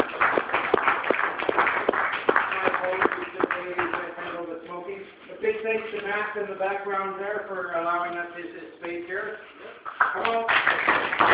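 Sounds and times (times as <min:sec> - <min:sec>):
audience applause: 0:00.0 - 0:04.0, 0:10.0 - 0:11.3
speech: 0:06.1 - 0:11.3.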